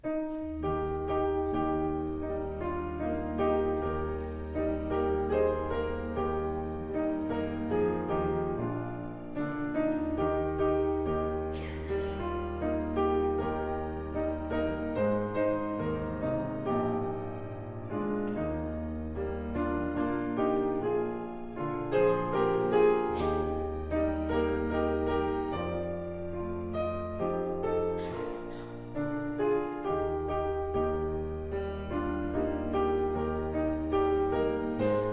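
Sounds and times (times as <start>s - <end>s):
prelude music: 0.0s - 35.1s.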